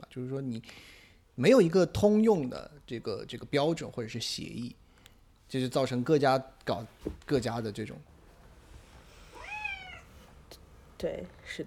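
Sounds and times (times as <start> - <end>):
speech: 0.2 - 4.8, 5.5 - 8.1, 11.0 - 11.6
cat meowing: 9.3 - 10.2.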